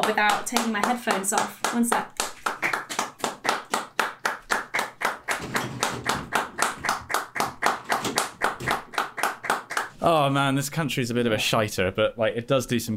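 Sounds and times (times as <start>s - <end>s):
group of people outdoors clapping rhythmically: 0.0s - 10.0s
speech: 0.1s - 2.2s, 10.0s - 12.9s.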